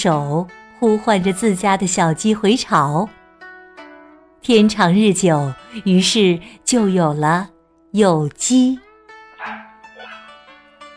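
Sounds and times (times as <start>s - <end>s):
speech: 0.0s - 3.2s, 4.4s - 8.8s
dog barking: 9.4s - 10.3s.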